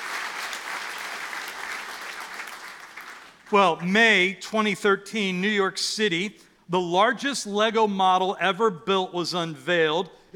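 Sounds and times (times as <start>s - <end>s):
crowd applause: 0.0s - 3.4s
speech: 3.5s - 10.2s.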